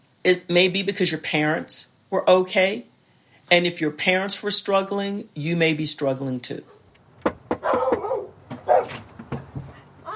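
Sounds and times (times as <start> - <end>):
speech: 0.2 - 2.9, 3.5 - 6.8
dog barking and yipping: 7.6 - 9.0.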